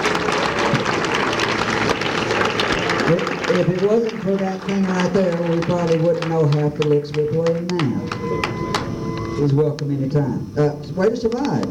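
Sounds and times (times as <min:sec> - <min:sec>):
audience applause: 0:00.0 - 0:08.9
speech: 0:03.1 - 0:08.6, 0:09.4 - 0:11.6.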